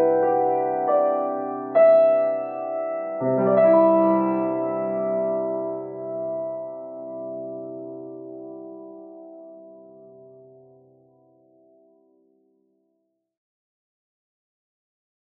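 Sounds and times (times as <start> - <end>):
piano playing: 0.0 - 12.0.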